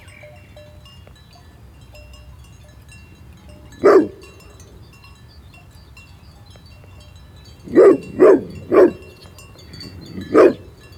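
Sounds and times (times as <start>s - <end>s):
Pyrenean Mountain Dog barking: 3.7s - 4.6s, 7.7s - 10.8s.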